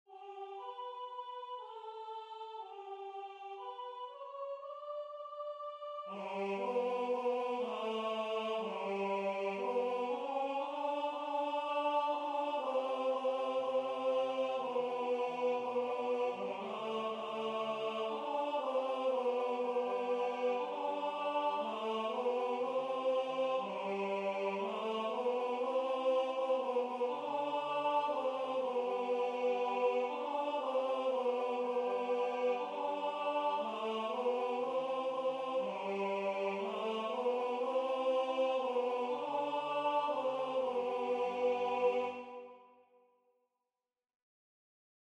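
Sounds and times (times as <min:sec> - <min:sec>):
tenor singing: 0:00.1 - 0:42.5.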